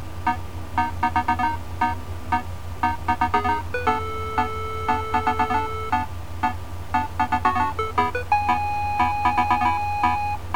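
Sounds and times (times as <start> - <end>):
tune: 0.3 - 10.4.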